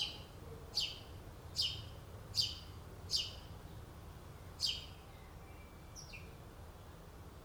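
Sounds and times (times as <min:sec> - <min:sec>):
house sparrow chirping: 0:00.0 - 0:06.4
quiet low-pitched background noise: 0:00.0 - 0:07.4.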